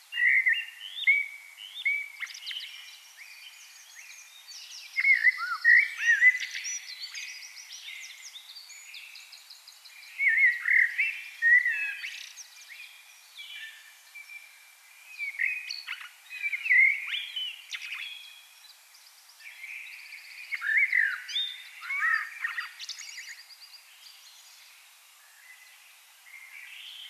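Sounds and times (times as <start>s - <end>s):
common blackbird song: 0.0s - 27.0s.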